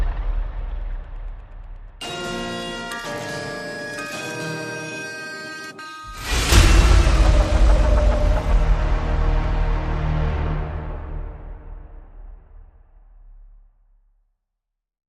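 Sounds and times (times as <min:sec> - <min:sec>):
horror-style nursery tune instrumental: 0:02.0 - 0:11.4.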